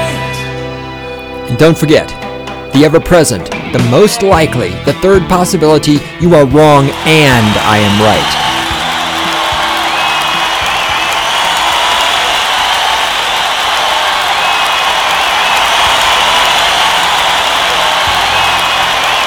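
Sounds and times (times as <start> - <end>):
audience applause: 0.0 - 19.2
speech: 1.5 - 8.5
whoops and cheers: 6.8 - 19.2.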